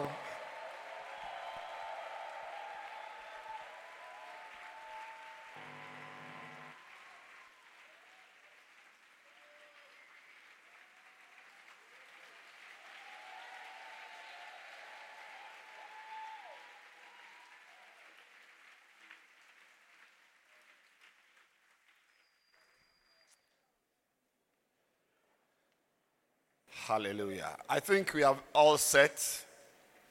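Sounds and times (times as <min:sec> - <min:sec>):
audience clapping hands: 0:00.0 - 0:23.3
speech: 0:26.9 - 0:29.5.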